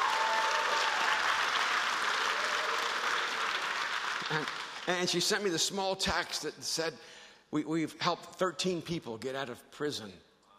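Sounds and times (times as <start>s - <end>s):
crowd applause: 0.0s - 5.3s
speech: 4.3s - 10.3s.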